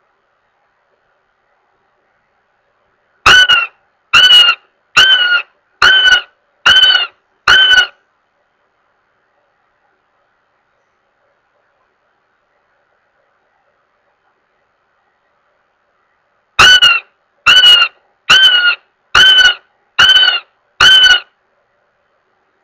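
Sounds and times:
Northern goshawk wailing with loud drawn-out nasal squeals: 3.3s - 8.0s, 16.6s - 21.3s.

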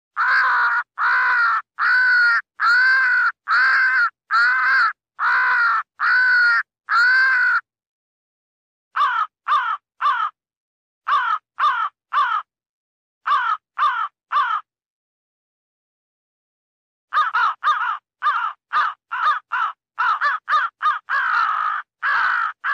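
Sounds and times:
crow cawing: 0.1s - 7.7s, 8.9s - 10.4s, 11.0s - 12.5s, 13.2s - 14.7s, 17.1s - 22.7s.

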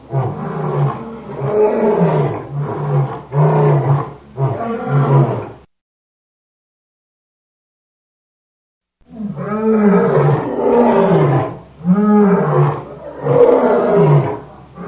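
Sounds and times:
lion roaring grunts: 0.0s - 5.6s, 9.2s - 14.8s.

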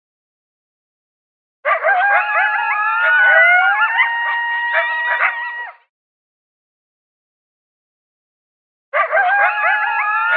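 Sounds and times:
coyotes howling and yipping: 1.7s - 5.8s, 9.0s - 10.3s.

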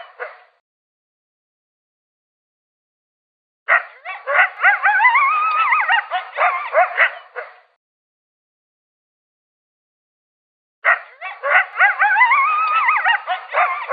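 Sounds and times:
coyote howl with wobbling siren-like pitch: 3.7s - 7.6s, 10.8s - 13.9s.

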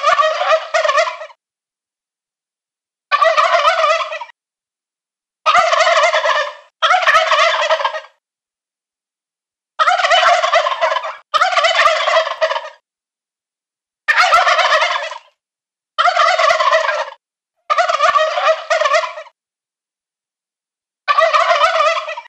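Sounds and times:
adult male wild turkey gobbling: 0.0s - 1.4s, 3.1s - 4.4s, 5.5s - 8.2s, 9.8s - 12.8s, 14.1s - 15.4s, 16.0s - 19.4s, 21.1s - 22.2s.

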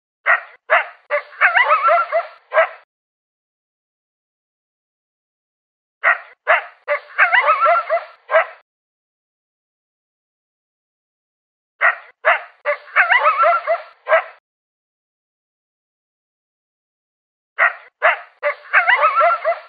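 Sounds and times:
coyote barking and yelping: 0.3s - 2.8s, 6.0s - 8.6s, 11.8s - 14.4s, 17.6s - 19.6s.

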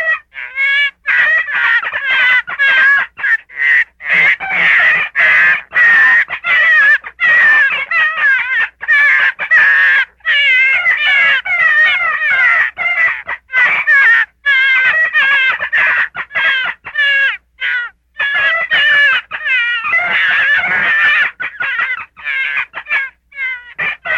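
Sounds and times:
gray fox yelping: 0.0s - 24.1s.

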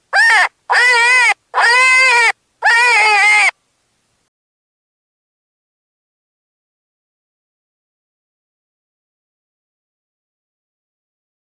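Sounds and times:
cottontail rabbit distress screaming: 0.1s - 3.6s.

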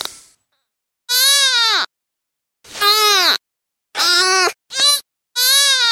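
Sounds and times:
deer fawn distress bleats: 1.1s - 1.9s, 2.9s - 5.8s.

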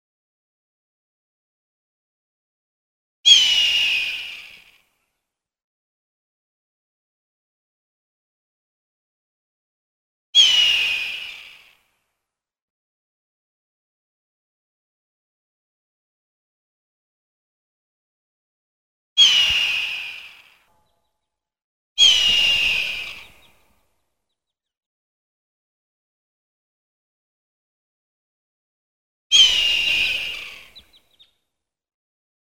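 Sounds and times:
hawk giving a raspy drawn-out scream: 3.3s - 4.6s, 10.4s - 11.4s, 19.2s - 20.6s, 22.0s - 23.5s, 29.3s - 31.1s.

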